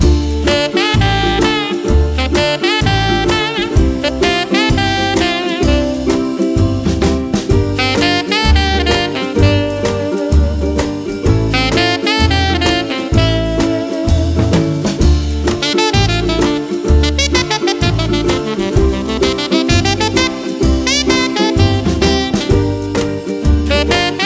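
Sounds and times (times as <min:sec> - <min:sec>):
saxophone: 0:00.0 - 0:06.8, 0:07.4 - 0:24.2.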